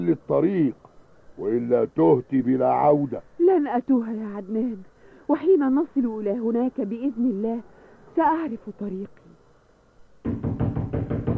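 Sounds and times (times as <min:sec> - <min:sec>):
speech: 0:00.0 - 0:09.2
knocking on a door: 0:10.2 - 0:11.3.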